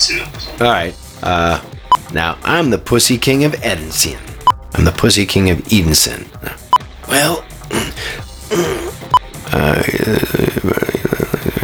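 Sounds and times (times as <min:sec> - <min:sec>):
speech: 0:00.1 - 0:08.8, 0:09.5 - 0:11.6
voice actor imitating snoring: 0:07.7 - 0:11.6.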